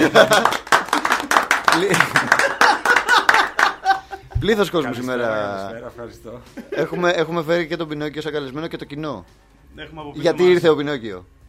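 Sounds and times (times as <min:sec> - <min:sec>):
small group clapping hands: 0:00.0 - 0:04.1
laughter: 0:00.0 - 0:04.8, 0:06.5 - 0:07.2
speech: 0:00.1 - 0:00.5, 0:01.8 - 0:02.2, 0:04.4 - 0:11.4.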